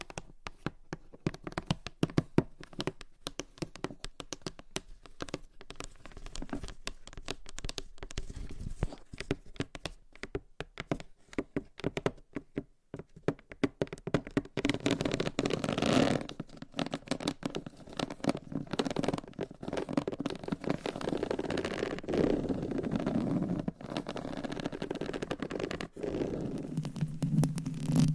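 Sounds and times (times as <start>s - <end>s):
gentle tapping and scratching: 0.0s - 28.1s.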